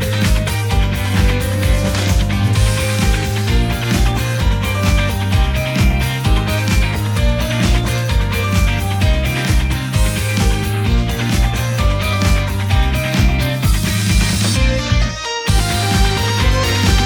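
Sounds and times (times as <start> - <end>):
instrumental music without vocals: 0.0 - 17.0.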